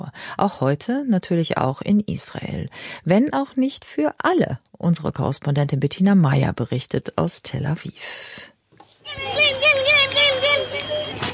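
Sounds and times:
speech: 0:00.2 - 0:08.5
excited high-pitched children's voices calling out: 0:09.0 - 0:11.3
children on bicycles ringing bells: 0:09.1 - 0:11.3.

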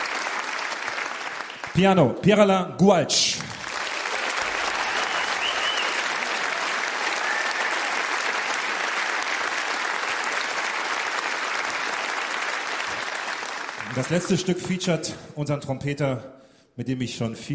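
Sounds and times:
audience applause: 0:00.0 - 0:01.8, 0:03.4 - 0:14.8
speech: 0:01.7 - 0:03.6, 0:14.0 - 0:17.5.

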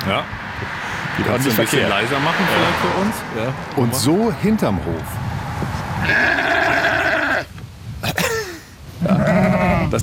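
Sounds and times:
speech: 0:00.1 - 0:05.2, 0:06.0 - 0:06.6
sheep bleating: 0:06.0 - 0:07.5, 0:09.0 - 0:10.0.

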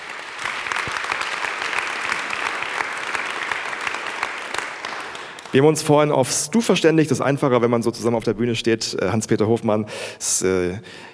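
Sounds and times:
audience applause: 0:00.0 - 0:05.6
speech: 0:05.5 - 0:11.1.

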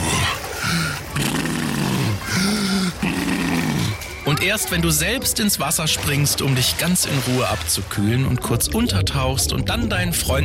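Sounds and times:
walrus-like heavy breathing: 0:00.0 - 0:04.0
speech: 0:04.4 - 0:10.4.

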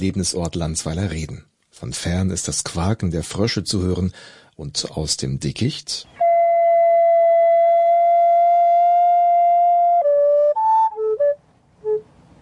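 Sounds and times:
speech: 0:00.0 - 0:06.2
recorder flute playing spherical tones: 0:06.2 - 0:12.1.

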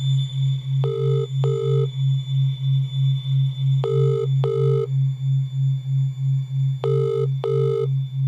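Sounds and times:
steady low electronic hum: 0:00.0 - 0:08.2
phone ringback tone: 0:00.8 - 0:01.9, 0:03.8 - 0:04.9, 0:06.8 - 0:07.9.

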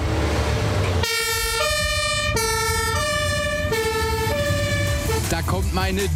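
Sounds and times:
fire engine engine rumbling: 0:00.0 - 0:06.1
fire engine two-tone siren: 0:01.0 - 0:05.3
speech: 0:05.8 - 0:06.1.

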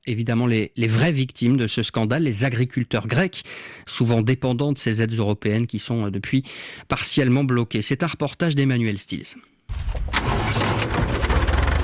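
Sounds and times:
speech: 0:00.0 - 0:10.9
small tractor engine running: 0:10.8 - 0:11.8.

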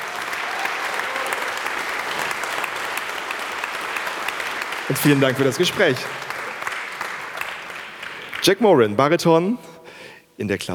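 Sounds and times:
audience applause: 0:00.0 - 0:08.6
speech: 0:04.9 - 0:06.3, 0:08.4 - 0:09.7, 0:10.4 - 0:10.7.

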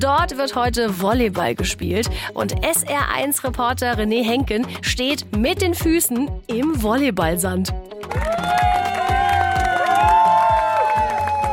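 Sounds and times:
speech: 0:00.0 - 0:08.6
spectators cheering on open-water swimmers: 0:08.1 - 0:11.5.

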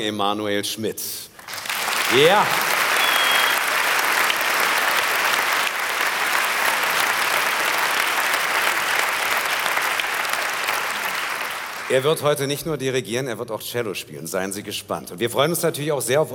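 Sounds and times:
speech: 0:00.0 - 0:02.8, 0:11.9 - 0:16.3
audience applause in a theatre: 0:01.4 - 0:12.1.

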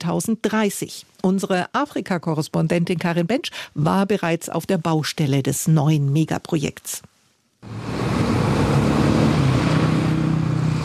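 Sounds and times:
speech: 0:00.0 - 0:08.4
construction machines levelling the ground: 0:07.6 - 0:10.8
trucks transporting stones and gravel: 0:07.6 - 0:10.8.

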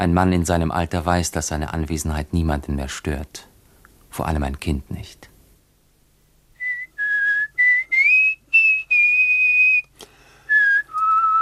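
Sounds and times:
speech: 0:00.0 - 0:03.5, 0:04.1 - 0:05.3
person whistling a tune: 0:06.6 - 0:11.4.

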